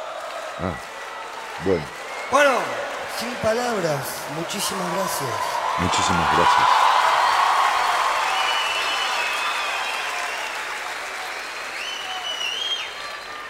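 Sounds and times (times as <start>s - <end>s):
audience applauding: 0.0s - 13.4s
speech: 0.6s - 0.9s, 1.6s - 6.9s
faint whistles: 8.3s - 10.6s, 11.6s - 13.4s.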